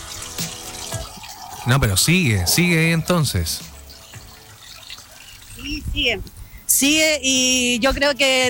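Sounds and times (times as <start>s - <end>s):
water pouring down onto a city street intersection from a leak: 0.0s - 7.8s
speech: 1.6s - 3.7s, 6.0s - 8.4s.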